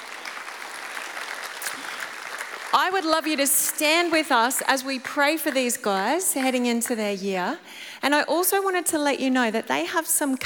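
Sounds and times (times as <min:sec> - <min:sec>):
audience clapping: 0:00.0 - 0:03.5
speech: 0:02.7 - 0:10.4.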